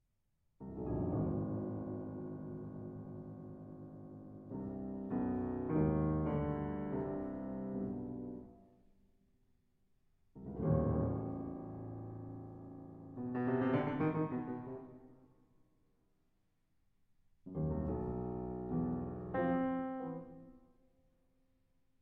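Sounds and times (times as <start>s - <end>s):
piano piece: 0.6s - 8.7s, 10.4s - 15.2s, 17.5s - 20.6s.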